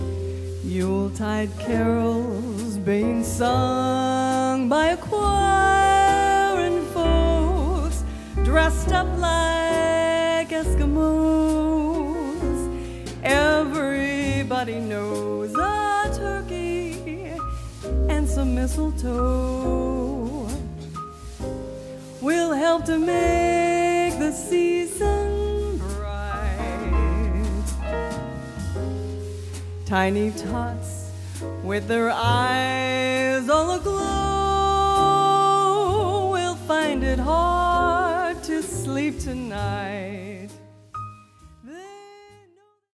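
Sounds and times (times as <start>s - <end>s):
christmas song by a trio: 0.0s - 42.1s.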